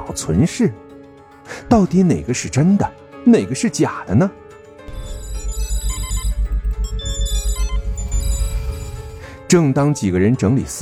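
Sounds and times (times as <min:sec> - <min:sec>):
speech: 0:00.1 - 0:00.9, 0:01.5 - 0:04.4, 0:09.5 - 0:10.7
mobile phone ringing: 0:04.9 - 0:09.4.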